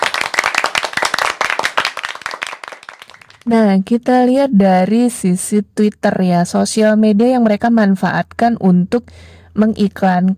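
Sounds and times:
hand clapping: 0:00.0 - 0:03.5
speech: 0:03.5 - 0:10.3.

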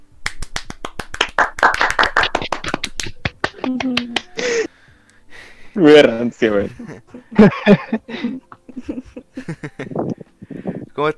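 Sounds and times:
applause: 0:00.3 - 0:04.4
person cheering: 0:03.5 - 0:04.7
speech: 0:05.8 - 0:09.9, 0:11.0 - 0:11.1
laughter: 0:06.1 - 0:10.2.

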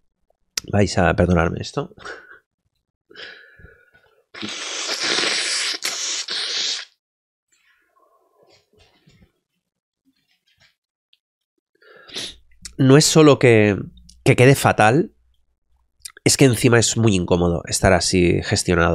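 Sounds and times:
speech: 0:00.7 - 0:02.3, 0:03.2 - 0:03.4, 0:04.4 - 0:04.7, 0:12.8 - 0:15.2, 0:16.2 - 0:18.9
congested person blowing their nose: 0:04.3 - 0:07.0, 0:12.0 - 0:12.4
short breathy sniffs: 0:04.4 - 0:07.0.

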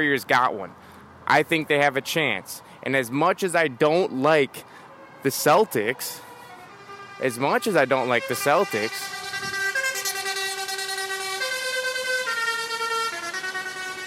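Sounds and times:
speech: 0:00.0 - 0:06.3, 0:07.2 - 0:09.6
semi truck horn blaring: 0:04.9 - 0:14.0.

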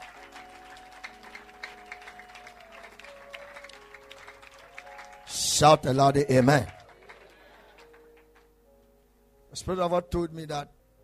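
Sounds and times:
audience clapping hands: 0:00.0 - 0:08.6
speech: 0:05.6 - 0:06.8, 0:09.6 - 0:10.8.

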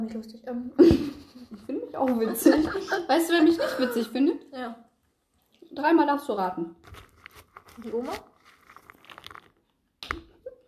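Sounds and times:
speech: 0:00.0 - 0:04.8, 0:05.8 - 0:07.0, 0:07.8 - 0:08.3
laughter: 0:00.8 - 0:04.4
chewing popcorn: 0:06.8 - 0:10.3.

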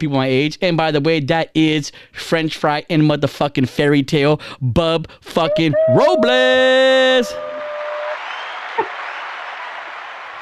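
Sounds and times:
speech: 0:00.0 - 0:07.5, 0:08.8 - 0:09.0
applause sound effect from a soundboard: 0:06.9 - 0:10.4.

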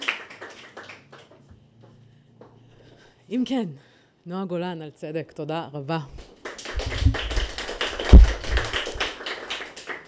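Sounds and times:
audience clapping: 0:00.0 - 0:01.5, 0:06.2 - 0:10.0
speech: 0:03.3 - 0:06.2.

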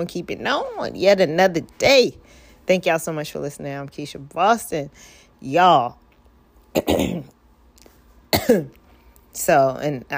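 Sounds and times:
speech: 0:00.0 - 0:06.0, 0:06.8 - 0:07.4, 0:08.3 - 0:10.1
person coughing: 0:06.8 - 0:07.3, 0:08.3 - 0:08.8.

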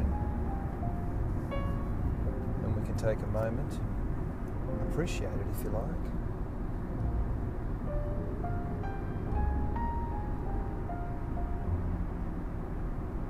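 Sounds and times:
soft tonal notes: 0:00.0 - 0:03.4, 0:06.8 - 0:12.8
low rumbling hum of a moving car's interior: 0:00.0 - 0:13.2
speech: 0:03.0 - 0:04.0, 0:04.8 - 0:06.2.

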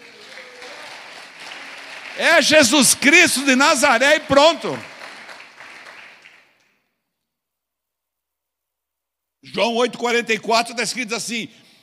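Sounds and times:
audience applauding: 0:00.0 - 0:06.8
speech: 0:02.2 - 0:04.9, 0:09.6 - 0:11.6.

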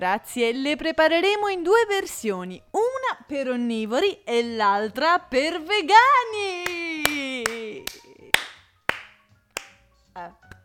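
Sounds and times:
speech: 0:00.0 - 0:06.5
applause: 0:07.0 - 0:09.8.

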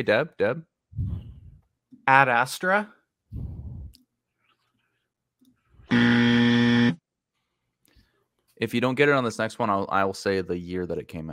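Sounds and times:
speech: 0:00.0 - 0:01.1, 0:02.1 - 0:03.5, 0:08.6 - 0:11.3
low rumble: 0:01.0 - 0:01.6, 0:03.4 - 0:04.0
quiz buzzer: 0:05.9 - 0:07.0.

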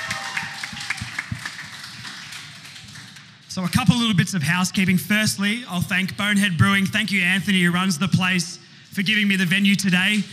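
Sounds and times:
audience applause: 0:00.0 - 0:03.4
speech: 0:03.6 - 0:10.3.

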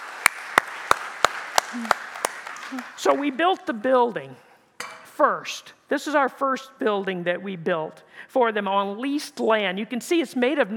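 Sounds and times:
sharp crisp audience claps: 0:00.0 - 0:03.7
speech: 0:01.7 - 0:02.0, 0:02.7 - 0:04.5, 0:05.2 - 0:10.7.

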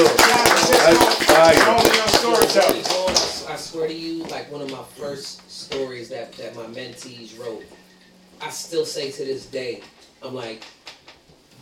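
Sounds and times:
audience clapping: 0:00.0 - 0:04.8
speech: 0:04.4 - 0:07.8, 0:08.4 - 0:10.8.

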